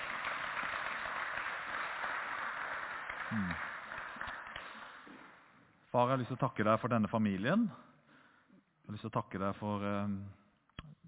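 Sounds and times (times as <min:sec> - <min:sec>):
crowd applauding: 0:00.0 - 0:05.4
speech: 0:03.3 - 0:03.7, 0:06.0 - 0:07.9, 0:08.9 - 0:10.4.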